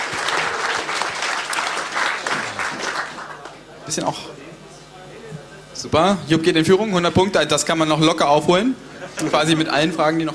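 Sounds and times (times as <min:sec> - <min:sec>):
small group clapping: 0:00.0 - 0:03.7
speech: 0:03.9 - 0:04.4, 0:05.8 - 0:10.3.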